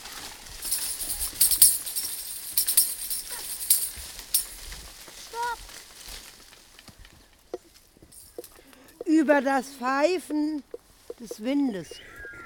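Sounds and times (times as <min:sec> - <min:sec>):
chains rattling at a gate: 0:00.2 - 0:05.1, 0:08.0 - 0:08.7
speech: 0:09.2 - 0:12.1.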